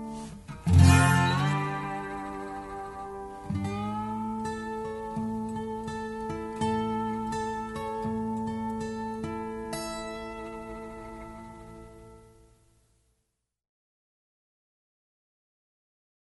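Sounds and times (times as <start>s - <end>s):
6-string and 12-string guitar: 0.0s - 13.1s.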